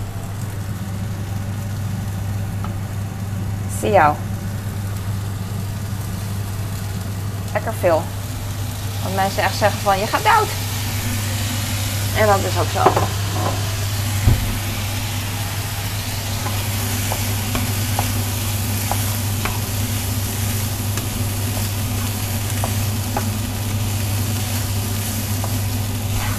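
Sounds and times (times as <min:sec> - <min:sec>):
food frying in a pan: 0:00.0 - 0:26.3
low constant hum: 0:00.0 - 0:26.3
speech: 0:03.8 - 0:04.3, 0:07.6 - 0:08.2, 0:09.0 - 0:11.2, 0:12.2 - 0:13.6.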